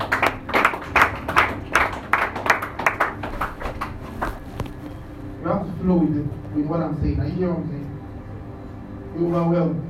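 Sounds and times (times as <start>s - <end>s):
rhythmic audience clapping: 0.0s - 4.9s
speech: 5.8s - 7.9s, 9.2s - 9.8s.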